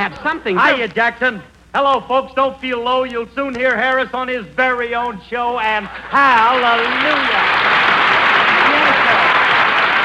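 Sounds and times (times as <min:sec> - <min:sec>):
speech: 0:00.0 - 0:07.6
studio audience applause: 0:05.7 - 0:10.0.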